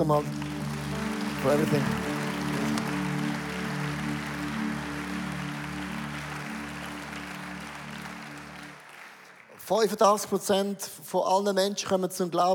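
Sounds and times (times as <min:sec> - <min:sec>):
speech: 0:00.0 - 0:00.4, 0:01.4 - 0:02.1, 0:09.7 - 0:12.5
audience applause: 0:00.0 - 0:09.7.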